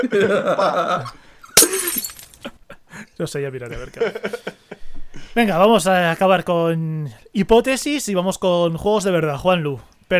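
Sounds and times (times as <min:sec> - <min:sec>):
laughter: 0:00.0 - 0:01.2, 0:03.7 - 0:04.8
speech: 0:00.0 - 0:01.2, 0:03.2 - 0:04.6, 0:05.3 - 0:10.1
glass bottle breaking: 0:01.6 - 0:02.4
glass shards tinkling: 0:01.6 - 0:02.4.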